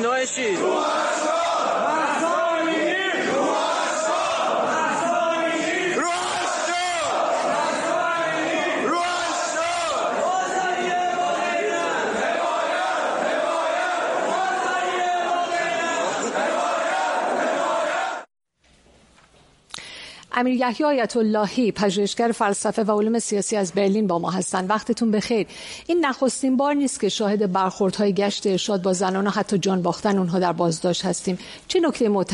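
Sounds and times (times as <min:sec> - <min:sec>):
speech: 0:00.0 - 0:02.0, 0:20.4 - 0:32.3
Tehran bazaar merchants chanting protest slogans as a massed crowd: 0:00.4 - 0:18.3.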